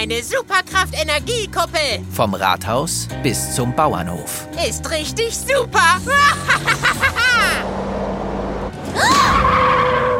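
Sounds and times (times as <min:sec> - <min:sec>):
speech: 0:00.0 - 0:07.1
laughter: 0:05.8 - 0:07.7
car braking hard with tire squeal: 0:07.6 - 0:10.1.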